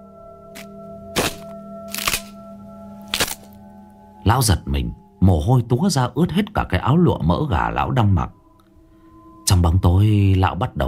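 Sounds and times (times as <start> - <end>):
tree branch snapping: 0.6 - 2.4, 3.0 - 3.6
speech: 4.3 - 8.4, 9.5 - 10.8.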